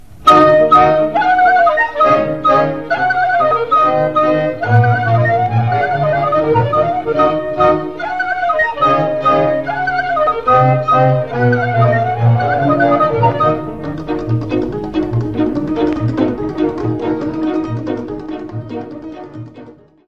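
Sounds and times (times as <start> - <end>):
Romanian hora on cobza: 0.0 - 20.0.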